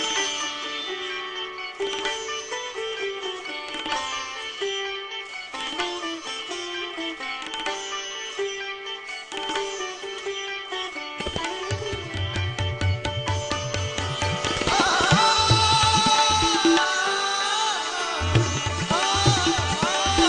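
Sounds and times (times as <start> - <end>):
sitar: 0.0 - 20.2.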